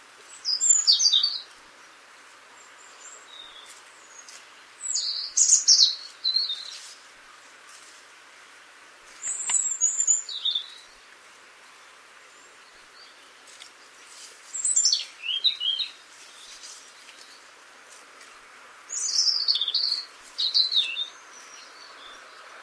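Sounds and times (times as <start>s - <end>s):
European robin song: 0.3s - 2.0s, 2.6s - 7.0s, 9.2s - 11.1s, 11.8s - 17.6s, 18.9s - 22.6s.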